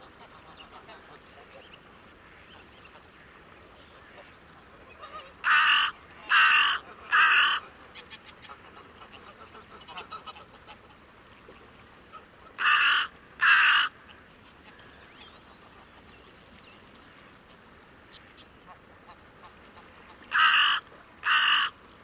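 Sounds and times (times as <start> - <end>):
bird cawing: 5.4 - 7.6, 12.6 - 13.9, 20.3 - 21.8.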